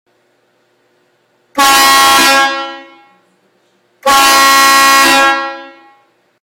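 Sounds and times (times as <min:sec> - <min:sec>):
train horn: 0:01.6 - 0:03.3, 0:04.0 - 0:06.1.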